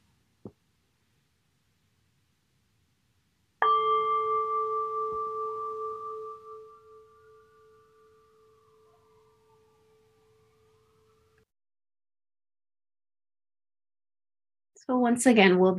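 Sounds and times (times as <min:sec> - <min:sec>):
meditation bell ringing: 0:03.6 - 0:11.4
speech: 0:14.9 - 0:15.7.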